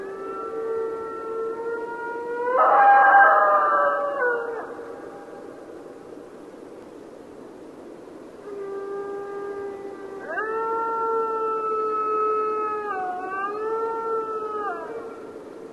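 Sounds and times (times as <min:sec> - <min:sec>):
Mexican wolf howling: 0:00.0 - 0:05.3, 0:08.4 - 0:15.4.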